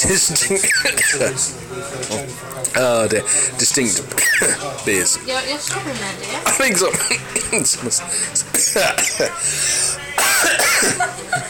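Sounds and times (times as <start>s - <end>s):
speech: 0.0s - 11.4s
person tasting beer coughing harshly: 0.5s - 1.3s, 4.2s - 4.6s, 8.5s - 9.4s, 10.2s - 11.1s
laughter: 6.5s - 11.4s.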